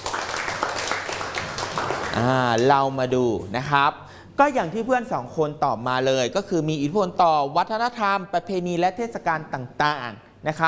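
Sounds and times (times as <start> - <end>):
pupils clapping for a student in a classroom: 0.0 - 2.7
speech: 2.2 - 10.6.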